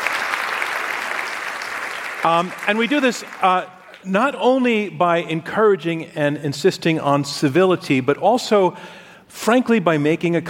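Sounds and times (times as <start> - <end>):
audience applause: 0.0 - 4.1
speech: 2.2 - 10.4.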